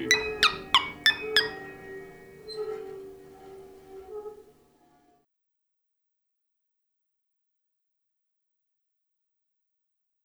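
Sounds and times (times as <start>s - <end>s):
fairground ghost train: 0.0s - 4.4s.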